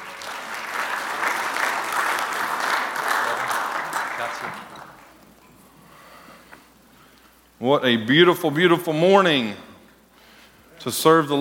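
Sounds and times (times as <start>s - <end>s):
audience applauding: 0.0s - 5.2s
speech: 4.2s - 4.8s, 7.6s - 9.7s, 10.8s - 11.3s.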